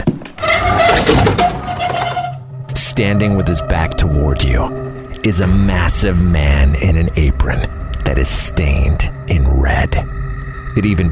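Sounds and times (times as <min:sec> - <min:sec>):
rusted metal door sliding open: 0:00.4 - 0:02.4
speech: 0:03.0 - 0:10.2, 0:10.8 - 0:11.1.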